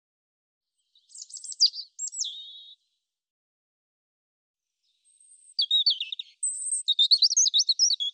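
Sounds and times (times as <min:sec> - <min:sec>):
European robin singing twittering high notes and thin whistles: 0:00.8 - 0:02.8, 0:04.8 - 0:08.1.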